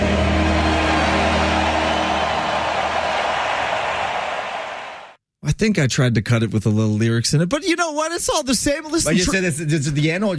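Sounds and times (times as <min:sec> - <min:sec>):
stadium crowd roaring at SoFi Stadium in Los Angeles: 0:00.0 - 0:05.2
speech: 0:05.6 - 0:10.3.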